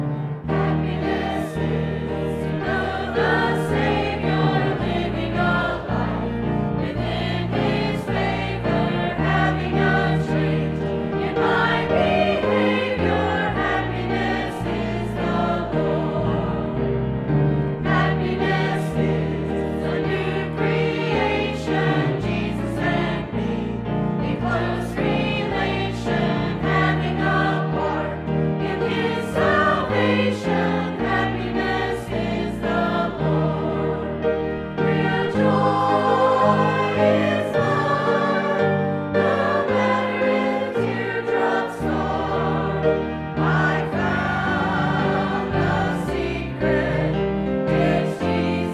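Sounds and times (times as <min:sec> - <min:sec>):
choir singing: 0:00.2 - 0:48.7.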